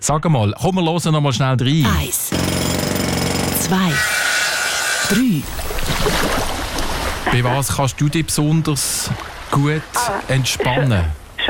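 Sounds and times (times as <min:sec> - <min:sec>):
speech: 0:00.0 - 0:02.7, 0:03.6 - 0:04.2, 0:05.1 - 0:06.5, 0:07.3 - 0:11.4
Kango breaker hammer pounding: 0:01.8 - 0:05.5.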